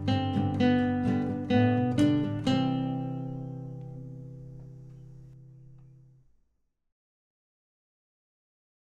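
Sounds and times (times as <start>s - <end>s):
fast guitar playing: 0.0s - 5.8s.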